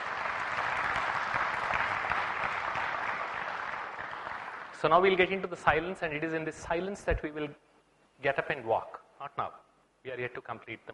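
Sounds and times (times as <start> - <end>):
audience clapping: 0.0 - 5.9
speech: 4.8 - 10.9.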